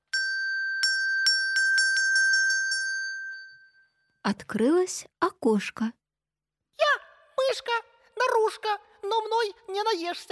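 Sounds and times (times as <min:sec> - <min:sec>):
small bell ringing: 0:00.0 - 0:04.2
speech: 0:04.3 - 0:06.0, 0:07.6 - 0:07.8, 0:08.4 - 0:10.2.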